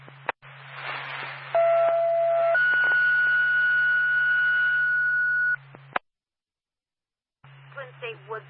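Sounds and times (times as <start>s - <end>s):
dispatch radio second alert tone: 1.6s - 5.6s
speech: 8.1s - 8.4s.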